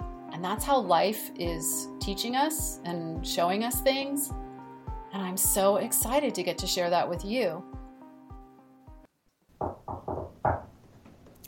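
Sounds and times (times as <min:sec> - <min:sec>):
speech: 0:00.4 - 0:04.4, 0:05.1 - 0:07.8
knock on a door: 0:09.6 - 0:10.8.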